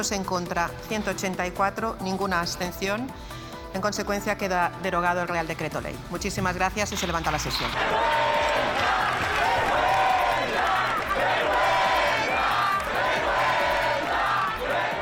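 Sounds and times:
speech: 0:00.0 - 0:08.2
crowd shouting protest chant in the Puerta del Sol: 0:07.7 - 0:14.9.

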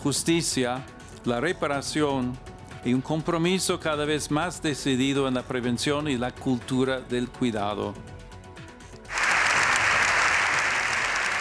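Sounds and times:
speech: 0:00.0 - 0:08.2
parliament applause after a speech: 0:09.1 - 0:11.3.

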